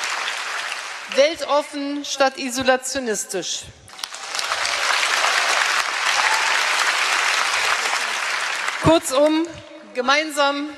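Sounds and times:
large audience applause after a speech: 0:00.0 - 0:01.2, 0:03.9 - 0:09.1
speech: 0:01.1 - 0:03.8, 0:08.8 - 0:10.7.

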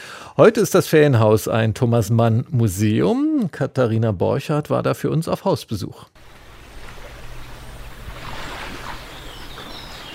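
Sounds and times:
speech: 0:00.4 - 0:06.1
birdsong at the Thomas-Mann-Haus in Nida: 0:06.2 - 0:10.1
gentle lapping lagoon waves at the Thomas-Mann-Haus in Nida: 0:06.2 - 0:10.1.

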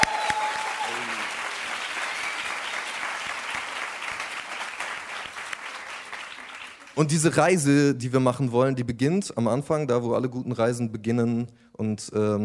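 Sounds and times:
audience applause: 0:00.0 - 0:07.3
speech: 0:07.0 - 0:12.4.

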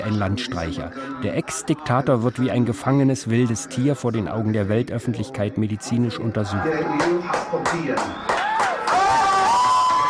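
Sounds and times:
speech: 0:00.1 - 0:08.3
family cheering in front of TV: 0:08.2 - 0:10.0.

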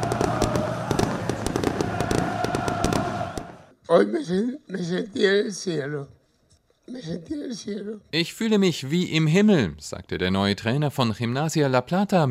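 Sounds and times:
fans chanting: 0:00.0 - 0:03.7
fireworks bangs: 0:00.0 - 0:03.7
speech: 0:03.9 - 0:06.2, 0:06.9 - 0:12.2.

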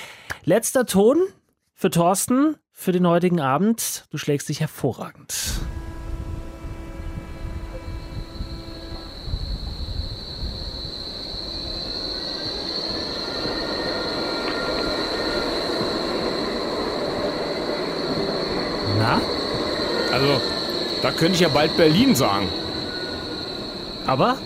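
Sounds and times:
speech: 0:00.5 - 0:05.7, 0:21.2 - 0:22.6, 0:24.1 - 0:24.4
tram electric motor hum: 0:05.6 - 0:24.4
Berlin Flexity tram wheels squealing: 0:05.7 - 0:24.4.

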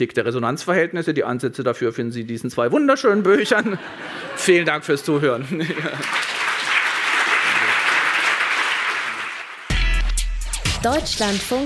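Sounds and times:
speech: 0:00.0 - 0:06.4, 0:10.8 - 0:11.6
laughter: 0:03.2 - 0:06.6
long enthusiastic applause from lecture audience: 0:05.6 - 0:09.7.

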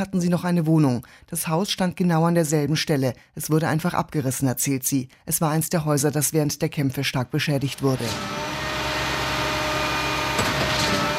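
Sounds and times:
speech: 0:00.0 - 0:08.6
construction site noise: 0:07.7 - 0:11.1.

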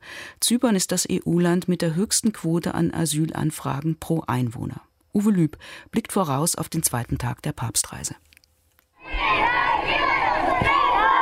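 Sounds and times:
speech: 0:00.4 - 0:08.3
children shouting and cheering at Pope Francis's arrival at Larnaca airport: 0:09.0 - 0:11.2.

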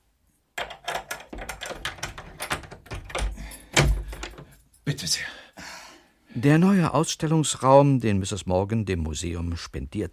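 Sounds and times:
key rattling and scraping in a lock: 0:00.6 - 0:04.7
door thud: 0:01.3 - 0:04.5
speech: 0:05.0 - 0:05.4, 0:06.4 - 0:10.1.

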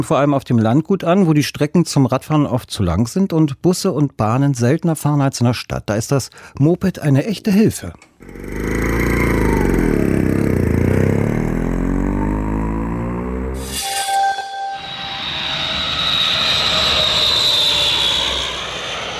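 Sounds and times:
speech: 0:00.0 - 0:08.9
aircraft engine roar: 0:08.2 - 0:12.9, 0:14.8 - 0:19.1
jet whine: 0:08.2 - 0:19.1.

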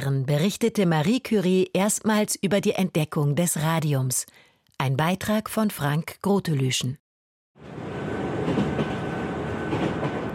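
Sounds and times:
speech: 0:00.0 - 0:07.0
train from Warsaw with rolling carriages rumbling: 0:07.7 - 0:10.3.

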